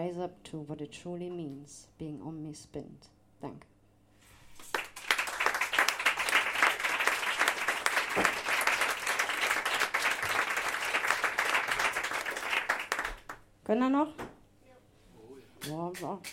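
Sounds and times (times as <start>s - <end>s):
speech: 0.0s - 3.7s, 13.7s - 14.3s, 15.7s - 16.3s
audience applause after a spoken text performance: 4.6s - 13.4s.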